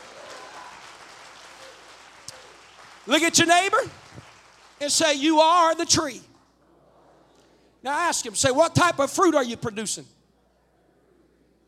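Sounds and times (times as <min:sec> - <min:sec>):
audience clapping hands: 0:00.0 - 0:06.6
speech: 0:03.1 - 0:04.0, 0:04.8 - 0:06.3, 0:07.8 - 0:10.2.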